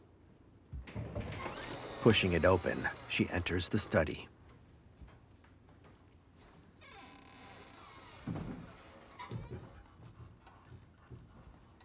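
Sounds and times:
door hinges creaking: 0.9 - 4.0, 6.8 - 10.0
speech: 2.0 - 4.3.

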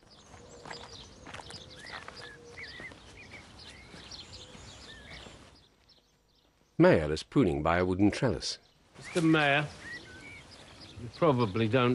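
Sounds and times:
two people's footsteps strolling through a garden: 0.0 - 6.8, 8.9 - 11.4
birds chirping: 0.0 - 11.9
speech: 6.8 - 9.8, 11.0 - 11.9.

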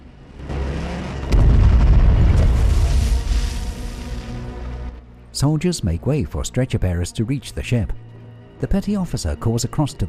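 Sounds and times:
bombs exploding by a harbour mole: 1.3 - 4.5
speech: 5.4 - 10.0.

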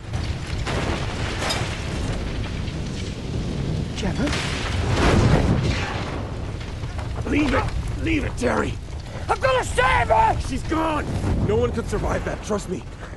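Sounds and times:
bits of bus flying everywhere: 0.0 - 13.1
bus exploding: 0.1 - 8.0
speech: 4.0 - 4.6, 7.4 - 13.1.

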